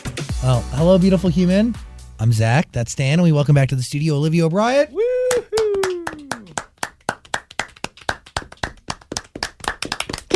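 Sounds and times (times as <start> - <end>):
speech: 0.4 - 5.0
falling vocal whoop: 4.9 - 6.6
studio group clapping: 5.2 - 10.3.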